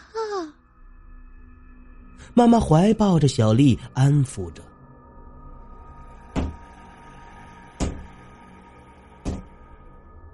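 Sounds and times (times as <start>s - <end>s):
speech: 2.3s - 4.7s
knocking on a wall: 6.4s - 6.7s, 7.8s - 8.2s, 9.2s - 9.6s.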